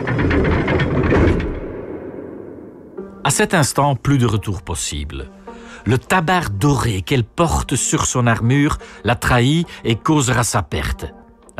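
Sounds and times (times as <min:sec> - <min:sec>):
dry metallic clank of portcullis closing: 0:00.0 - 0:03.6
speech: 0:03.3 - 0:11.5.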